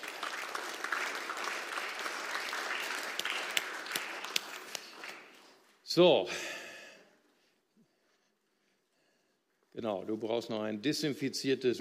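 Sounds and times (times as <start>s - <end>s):
audience applause: 0.0s - 5.6s
speech: 6.0s - 6.6s, 9.8s - 11.8s.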